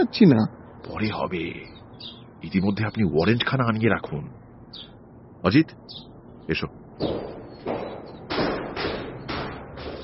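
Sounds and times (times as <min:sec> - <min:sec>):
speech: 0:00.0 - 0:07.3
knocking on a door: 0:07.0 - 0:10.0.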